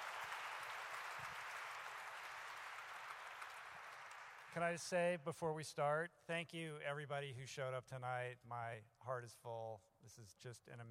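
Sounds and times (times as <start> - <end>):
audience applause for Rich Roll at a live event: 0.0 - 4.6
speech: 4.5 - 10.8.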